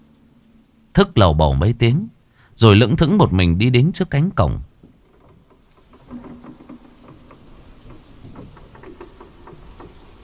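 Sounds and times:
heavy rain: 0.0 - 10.2
speech: 1.0 - 4.7.

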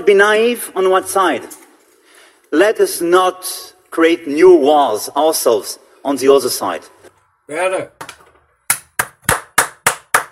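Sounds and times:
speech: 0.0 - 1.6, 2.5 - 8.1
speaker clapping his hands: 8.0 - 10.3.

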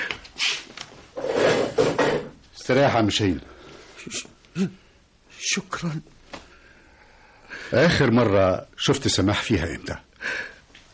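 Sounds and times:
chair dragged across the floor and set down with a knock: 1.2 - 2.3
speech: 2.7 - 4.8, 5.4 - 6.2, 7.7 - 10.5.

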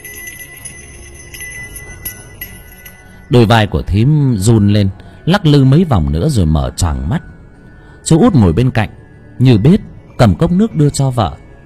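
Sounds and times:
small bell jingling: 0.0 - 3.7
speech: 3.3 - 7.3, 8.0 - 11.4.

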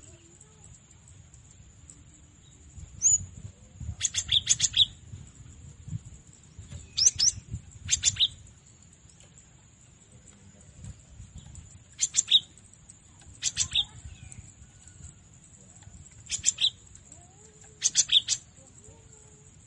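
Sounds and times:
cinereous tit chirping song: 2.6 - 5.1, 6.5 - 8.6, 11.4 - 14.5, 15.9 - 19.6.

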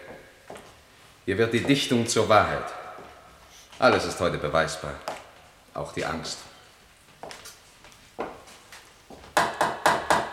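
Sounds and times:
speech: 1.3 - 2.8, 3.8 - 5.1, 5.8 - 6.5
knocking: 9.2 - 10.3.

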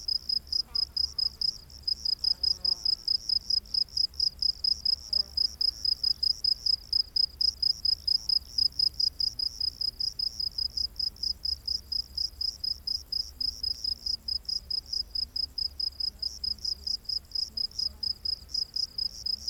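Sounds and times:
cricket chirping: 0.0 - 19.4.

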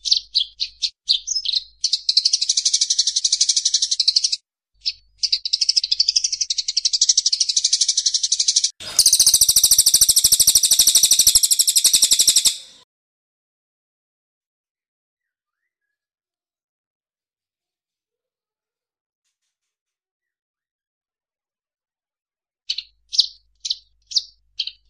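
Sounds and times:
bird song of high sharp chirps: 0.0 - 12.8, 22.7 - 24.8.

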